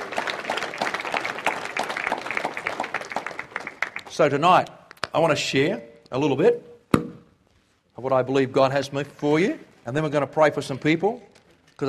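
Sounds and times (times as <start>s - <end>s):
audience clapping: 0.0s - 5.1s
speech: 4.2s - 6.7s, 8.0s - 11.8s.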